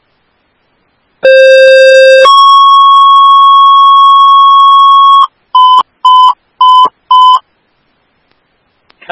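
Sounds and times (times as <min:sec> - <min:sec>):
ambulance dispatch paging tones: 0:01.2 - 0:07.5.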